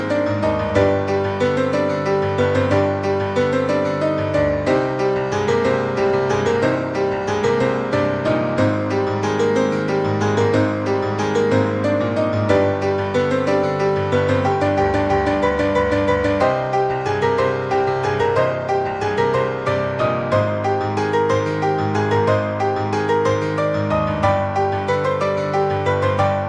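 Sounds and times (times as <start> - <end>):
main theme played on piano: 0.0 - 26.4.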